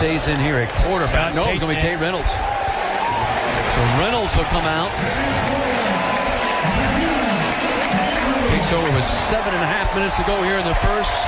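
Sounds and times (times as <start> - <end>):
speech: 0.0 - 2.5, 3.6 - 5.7, 8.6 - 11.2
stadium crowd clapping and cheering at a Clemson college football game: 0.0 - 11.2.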